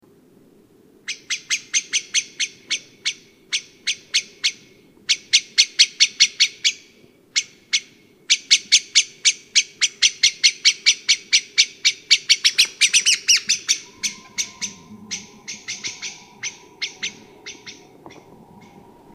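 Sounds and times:
Common blackbird chink notes: 1.1 - 18.8
faint low rumble: 12.5 - 19.1.

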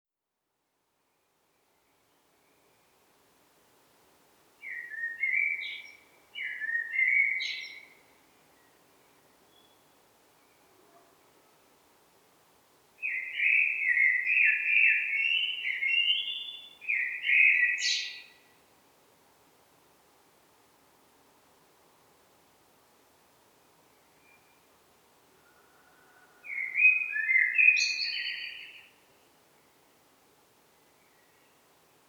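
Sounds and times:
Eurasian blackbird song: 4.6 - 7.9, 13.0 - 18.4, 26.4 - 29.0.

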